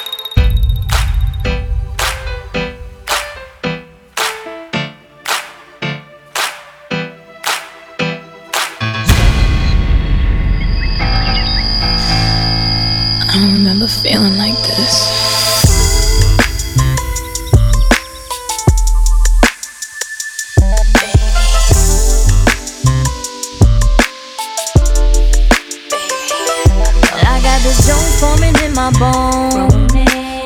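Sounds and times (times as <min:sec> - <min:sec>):
110 to 79 bpm tempo transition music: 0:00.3 - 0:05.4, 0:08.8 - 0:30.2.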